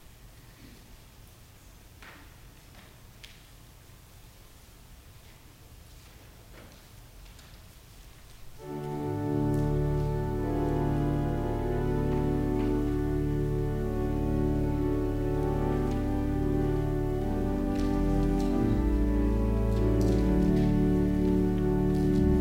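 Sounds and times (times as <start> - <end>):
organ music: 8.6 - 22.3.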